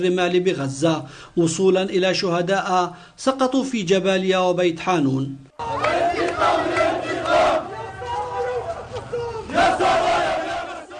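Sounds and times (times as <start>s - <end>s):
speech: 0.0s - 5.9s
funeral crowd chanting angry slogans: 5.5s - 10.9s.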